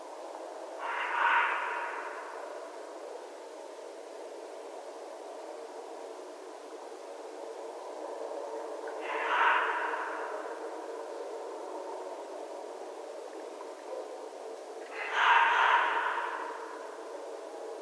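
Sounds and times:
red fox calling: 0:00.8 - 0:02.8, 0:08.9 - 0:11.1, 0:14.8 - 0:17.2.

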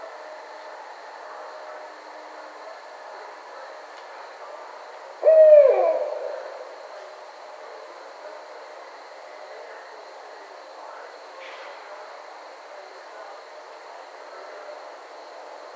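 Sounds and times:
Barred owl hooting: 0:05.2 - 0:06.9.

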